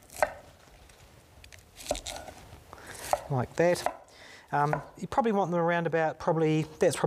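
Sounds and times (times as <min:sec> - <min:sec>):
knife chopping a vegetable into small florets: 0:01.8 - 0:04.0
speech: 0:03.3 - 0:07.0.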